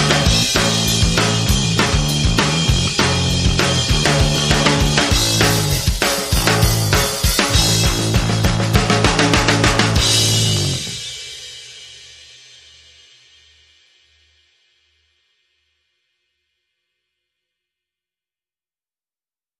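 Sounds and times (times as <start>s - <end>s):
drum and bass music: 0.0s - 11.3s.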